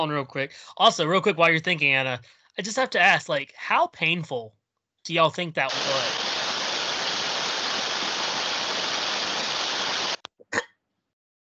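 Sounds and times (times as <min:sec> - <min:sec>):
speech: 0:00.0 - 0:06.2
old radio static: 0:05.7 - 0:10.2.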